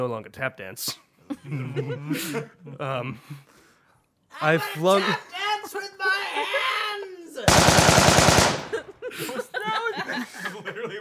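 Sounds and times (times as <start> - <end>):
speech: 0.0 - 3.6, 4.3 - 6.6
people chuckling: 1.3 - 3.4, 8.5 - 11.0
machine gun sound effect firing: 7.5 - 8.9.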